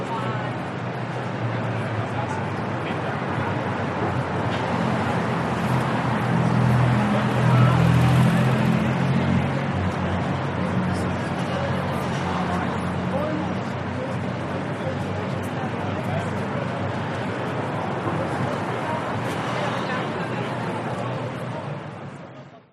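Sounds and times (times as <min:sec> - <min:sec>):
New York City traffic: 0:00.0 - 0:22.7
people in New York City: 0:00.0 - 0:22.7.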